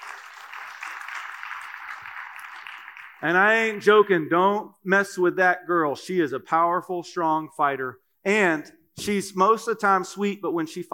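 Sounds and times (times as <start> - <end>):
round of applause: 0.0 - 3.4
speech: 3.2 - 10.9.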